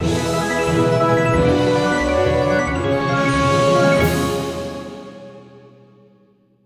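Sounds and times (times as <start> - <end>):
free spin win jingle: 0.0 - 5.0.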